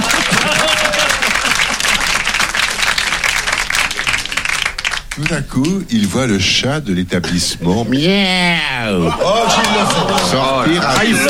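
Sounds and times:
laughter: 0.0s - 2.3s, 7.2s - 11.2s
audience applause: 0.0s - 5.8s, 9.0s - 11.2s
speech: 5.2s - 11.2s.

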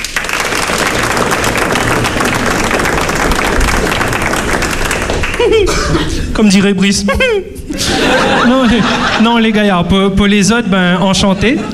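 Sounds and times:
crowd applause: 0.0s - 6.1s
laughter: 4.7s - 6.4s, 7.7s - 9.9s, 11.2s - 11.7s
speech: 6.4s - 11.7s.

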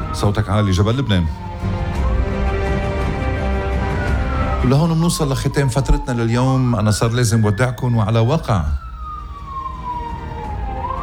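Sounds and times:
Lebanese Red Cross ambulance siren in Achrafieh: 0.0s - 11.0s
low engine rumble: 0.0s - 11.0s
speech: 0.2s - 1.9s, 4.6s - 8.8s.

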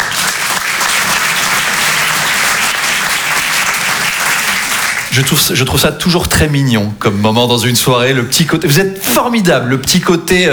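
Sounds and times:
audience applause: 0.0s - 5.6s
speech: 5.2s - 10.5s.

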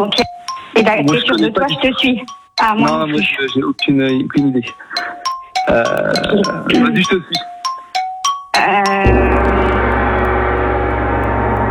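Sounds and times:
speech: 0.0s - 7.5s, 8.6s - 9.3s
game show gong: 9.1s - 11.6s.

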